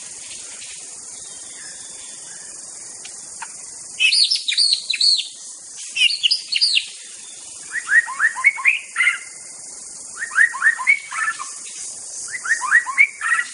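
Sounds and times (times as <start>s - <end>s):
White-rumped shama song of fluty whistles in a forest: 4.0s - 9.4s, 10.1s - 11.6s, 12.2s - 13.5s.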